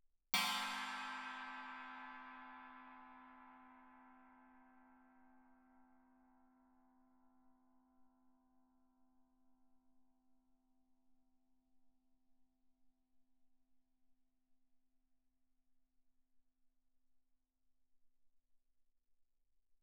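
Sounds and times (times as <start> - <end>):
suspended cymbals struck with Chinese stick: 0.4 - 5.5.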